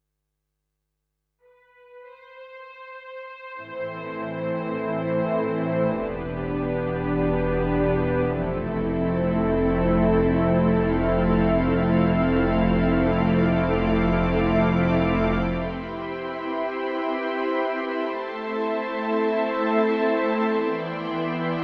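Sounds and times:
strings: 1.9s - 21.6s.

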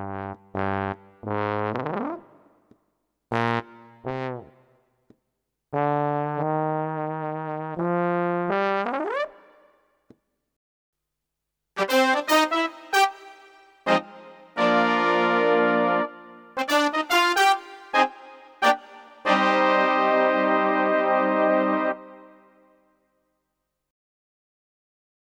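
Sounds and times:
PA600 brass sound: 0.0s - 2.5s, 3.3s - 4.7s, 5.8s - 9.8s, 11.8s - 22.8s.

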